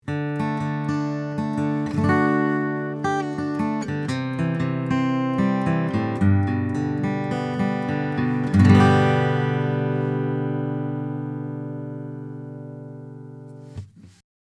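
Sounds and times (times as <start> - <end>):
acoustic guitar picking: 0.0 - 14.2.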